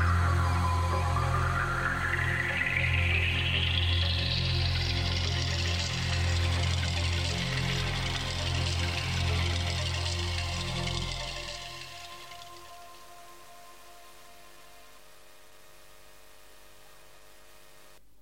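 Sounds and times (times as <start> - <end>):
synthetic noise intro: 0.0 - 13.9.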